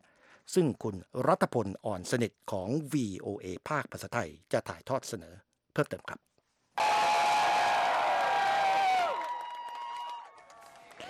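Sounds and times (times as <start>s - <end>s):
speech: 0.5s - 6.3s
crowd cheering at the US Supreme Court in Washington: 6.8s - 11.0s.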